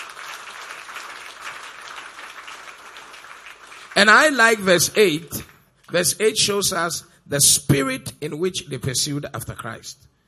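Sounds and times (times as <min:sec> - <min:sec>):
audience clapping: 0:00.0 - 0:06.0
speech: 0:04.0 - 0:10.1.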